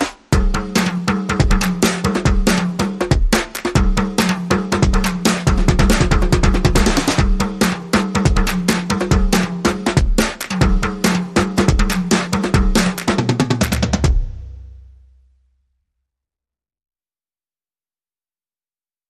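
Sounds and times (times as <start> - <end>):
drum backbeat and toms: 0.0 - 15.1.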